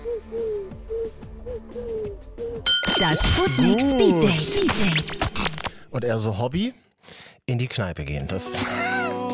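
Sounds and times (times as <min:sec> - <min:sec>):
person imitating a pigeon's coo: 0:00.0 - 0:02.7, 0:08.5 - 0:09.2
speech: 0:03.0 - 0:05.3, 0:06.0 - 0:06.8, 0:07.5 - 0:08.9.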